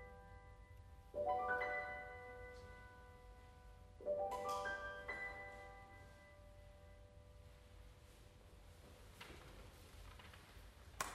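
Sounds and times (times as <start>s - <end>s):
glockenspiel: 0.0s - 7.0s.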